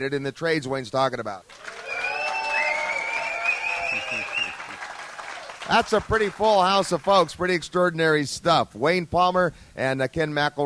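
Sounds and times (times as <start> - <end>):
speech: 0.0 - 1.7, 5.7 - 10.6
studio audience applause: 1.5 - 7.4.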